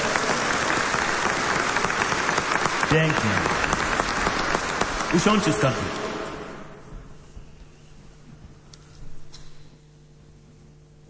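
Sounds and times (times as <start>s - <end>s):
audience applause: 0.0s - 6.8s
speech: 2.9s - 3.5s, 5.1s - 6.0s.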